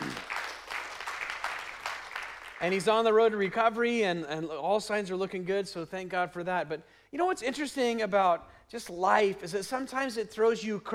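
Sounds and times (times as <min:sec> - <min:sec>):
audience applause: 0:00.0 - 0:02.8
speech: 0:02.6 - 0:10.9.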